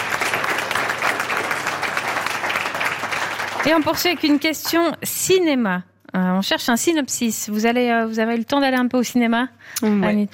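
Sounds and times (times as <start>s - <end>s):
audience applause: 0.0s - 4.8s
speech: 3.6s - 10.3s.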